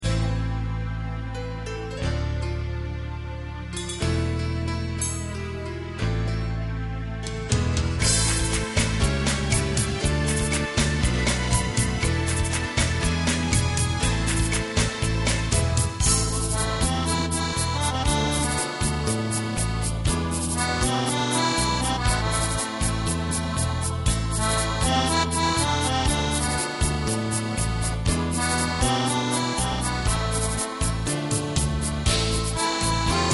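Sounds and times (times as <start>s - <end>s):
Gypsy tango music: 0.0s - 33.3s.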